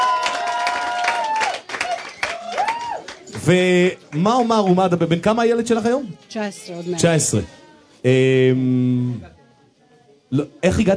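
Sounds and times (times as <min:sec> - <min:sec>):
audience applause: 0:00.0 - 0:04.7
speech: 0:03.4 - 0:09.4, 0:10.3 - 0:10.9.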